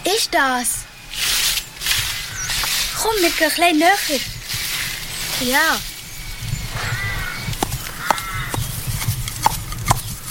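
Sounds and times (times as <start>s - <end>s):
speech: 0.1s - 0.9s, 3.0s - 4.3s, 5.4s - 5.9s
steady low rumble: 0.8s - 9.3s
horse hooves clopping on an outdoor trail: 1.1s - 10.2s.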